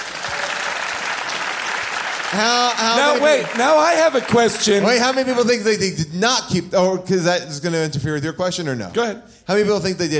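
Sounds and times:
audience applause: 0:00.0 - 0:05.7
speech: 0:02.3 - 0:10.1.

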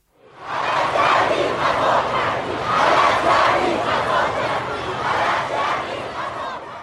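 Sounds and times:
crowd of protesters shouting slogans in the street: 0:00.2 - 0:06.8.

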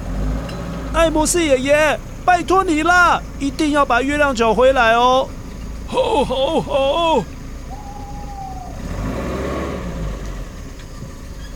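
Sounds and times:
old car driving off: 0:00.0 - 0:11.5
speech: 0:01.0 - 0:07.3
laughter: 0:05.9 - 0:08.9.

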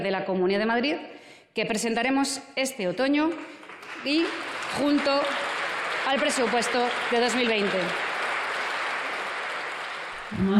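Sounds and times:
speech: 0:00.0 - 0:05.5, 0:06.1 - 0:08.0, 0:10.3 - 0:10.5
audience applause: 0:03.6 - 0:10.5.

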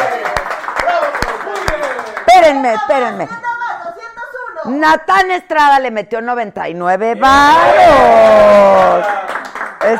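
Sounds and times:
applause: 0:00.0 - 0:02.8, 0:08.4 - 0:09.9
speech: 0:02.5 - 0:03.5, 0:04.6 - 0:09.2.

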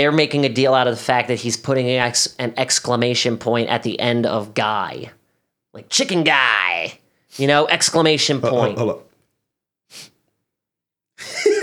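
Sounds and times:
speech: 0:00.0 - 0:05.2, 0:05.8 - 0:09.1
nasal sniff: 0:07.3 - 0:07.5, 0:09.9 - 0:10.2
laughter: 0:11.2 - 0:11.6.

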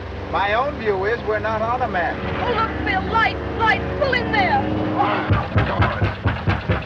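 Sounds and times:
speech: 0:00.3 - 0:06.0
heavy knocking on a door: 0:05.3 - 0:06.8.

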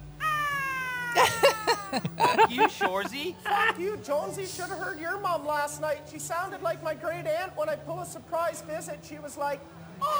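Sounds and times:
voice imitating a cat yowl: 0:00.2 - 0:02.7
laughter: 0:00.2 - 0:05.6, 0:08.2 - 0:09.3
speech: 0:01.9 - 0:10.1.

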